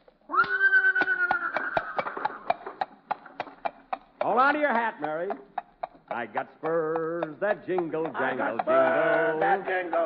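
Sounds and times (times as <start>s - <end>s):
horse hooves clopping: 0.0s - 10.0s
horse Leona neighing as it pulls a buggy, radio sound effect: 0.3s - 2.8s
speech: 4.4s - 5.5s, 6.1s - 10.0s.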